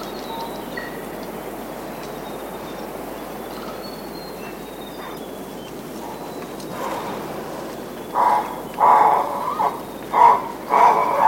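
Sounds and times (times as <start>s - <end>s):
royal spoonbill grunting calls: 8.1s - 11.2s.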